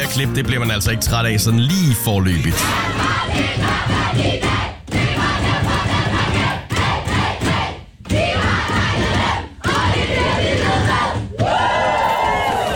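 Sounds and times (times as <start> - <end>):
speech: 0.1 - 5.0
Danish women's national football team shouting and chanting in the dressing room: 2.5 - 12.7.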